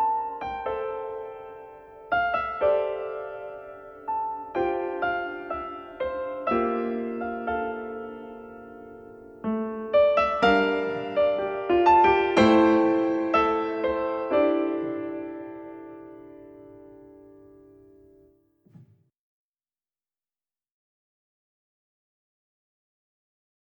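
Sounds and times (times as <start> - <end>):
piano music: 0.0 - 18.1.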